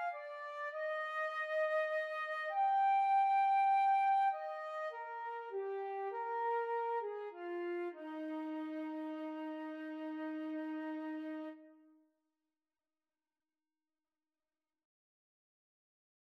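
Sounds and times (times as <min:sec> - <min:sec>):
flute and clarinet duet playing a carol: 0:00.0 - 0:11.7.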